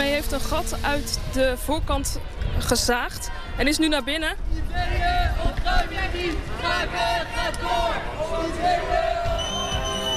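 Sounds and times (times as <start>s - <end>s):
speech: 0.2s - 9.2s
squatters shouting slogans: 4.5s - 10.0s.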